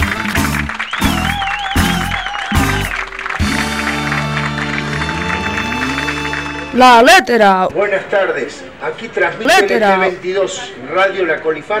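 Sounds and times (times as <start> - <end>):
audience clapping and cheering: 0.0 - 7.4
heavy rhythmic low thumps: 0.0 - 7.7
wavering whistles: 0.7 - 3.3
speech: 6.8 - 11.7.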